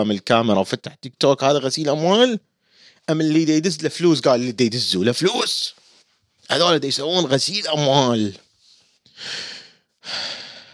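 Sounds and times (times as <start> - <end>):
speech: 0.0 - 2.5, 3.1 - 5.8, 6.5 - 8.4, 9.2 - 10.4
deep airy breaths from the speaker: 2.6 - 3.1, 8.6 - 10.7.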